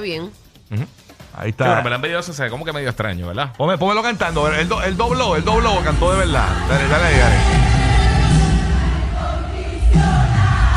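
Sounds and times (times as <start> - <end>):
speech: 0.0 - 7.7
concert crowd singing along at a show: 5.0 - 10.7.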